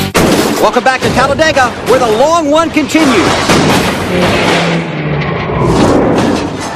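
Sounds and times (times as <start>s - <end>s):
race cars crashing and tumbling on the track: 0.1s - 6.7s
speech: 0.7s - 4.9s
racing cars roaring on the straightaway: 3.9s - 6.7s.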